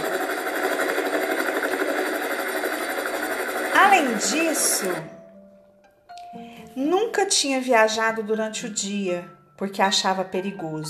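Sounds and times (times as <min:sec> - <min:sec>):
nine huge helicopters flying overhead: 0:00.0 - 0:04.7
speech: 0:03.8 - 0:05.2, 0:06.8 - 0:10.8.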